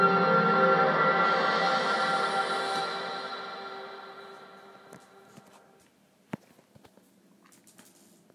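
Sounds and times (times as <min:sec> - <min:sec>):
space echo tape echo effect: 0:00.0 - 0:05.8.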